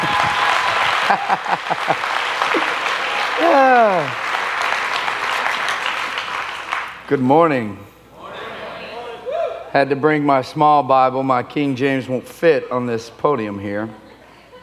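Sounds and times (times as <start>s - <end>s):
audience clapping: 0.0s - 7.1s
laughter: 0.9s - 4.2s
speech: 1.1s - 4.3s, 7.1s - 8.0s, 9.8s - 14.0s.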